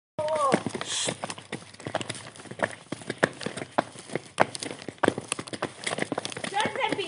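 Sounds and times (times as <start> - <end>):
footsteps on stones: 0.2 - 7.0.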